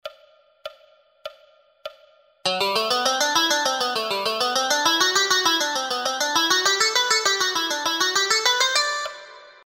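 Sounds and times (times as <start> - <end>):
scales on a two-string instrument: 2.5 - 9.6.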